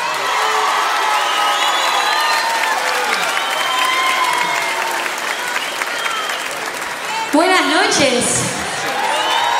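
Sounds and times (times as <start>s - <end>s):
audience applause: 0.0s - 9.5s
speech: 7.4s - 8.5s.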